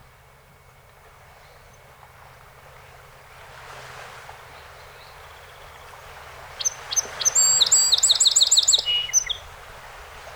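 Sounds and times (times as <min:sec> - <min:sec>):
song sparrow song: 0:06.4 - 0:09.6.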